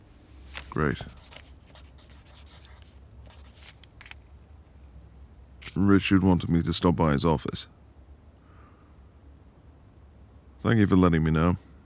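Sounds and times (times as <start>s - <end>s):
pen scratching on paper writing a note: 0.6s - 4.2s
speech: 0.8s - 1.4s, 5.8s - 7.8s, 10.6s - 11.7s.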